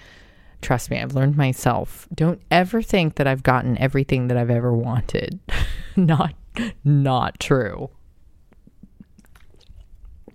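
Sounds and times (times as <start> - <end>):
speech: 0.7 - 8.0
person taking a big swig of water: 8.5 - 10.3.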